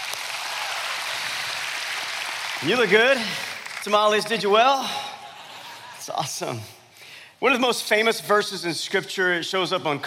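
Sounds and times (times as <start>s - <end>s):
church congregation applause: 0.0s - 5.0s
speech: 2.6s - 5.1s, 6.1s - 6.8s, 7.4s - 10.0s
laughter: 4.8s - 6.6s.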